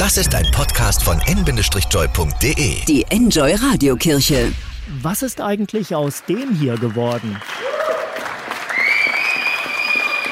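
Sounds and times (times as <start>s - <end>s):
speech: 0.1s - 7.7s
evening applause from balconies and windows: 5.6s - 10.3s.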